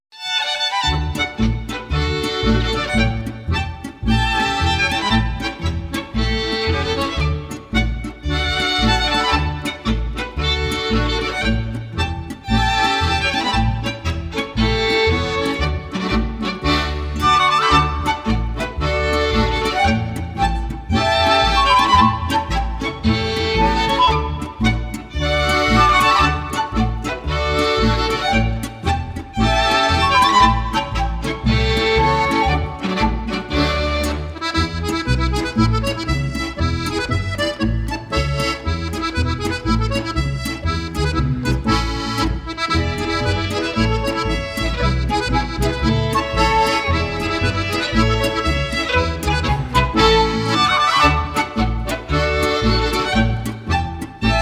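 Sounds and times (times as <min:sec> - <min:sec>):
polka played on violins: 0:00.1 - 0:54.3.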